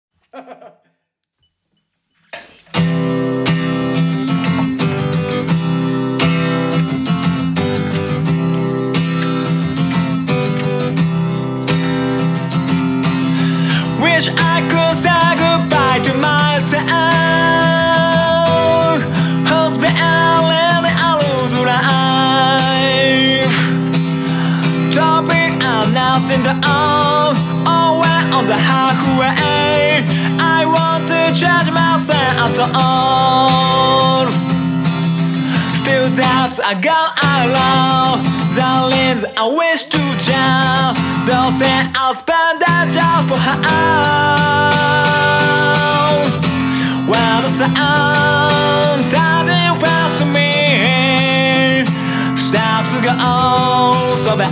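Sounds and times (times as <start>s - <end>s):
laughter: 0.2s - 1.0s
acoustic version of a song: 2.2s - 54.5s.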